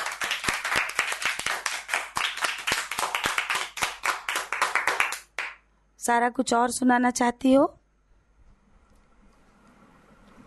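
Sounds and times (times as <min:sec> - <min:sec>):
audience clapping: 0:00.0 - 0:05.6
speech: 0:06.1 - 0:07.8.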